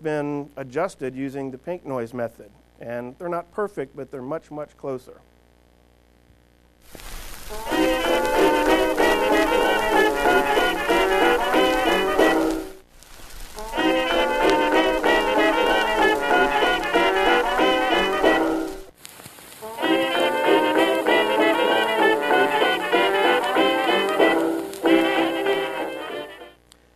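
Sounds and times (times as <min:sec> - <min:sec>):
speech: 0:00.0 - 0:05.3
faint crackly vinyl surface noise: 0:06.7 - 0:26.5
music snippets played from three vinyl records: 0:06.9 - 0:26.6.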